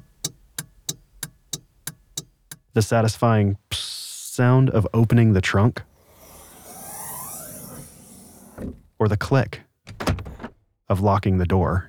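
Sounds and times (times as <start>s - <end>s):
car turn signal blinker ticking: 0.0s - 2.7s
speech: 2.8s - 5.9s, 8.6s - 9.6s, 10.9s - 11.8s.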